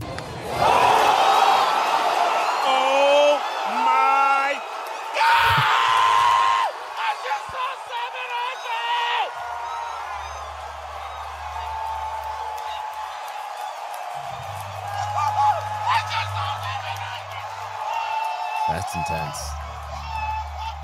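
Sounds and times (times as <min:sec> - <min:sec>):
loud stadium crowd roaring and cheering: 0:00.0 - 0:20.8
scattered clapping: 0:05.9 - 0:20.8.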